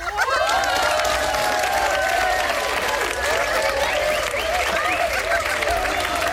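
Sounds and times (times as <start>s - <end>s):
laughter: 0.0s - 6.3s
applause: 0.2s - 6.3s.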